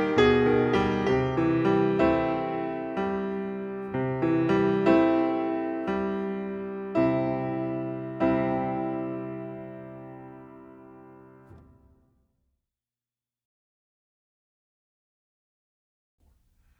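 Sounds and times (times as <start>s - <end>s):
music: 0.0s - 12.2s.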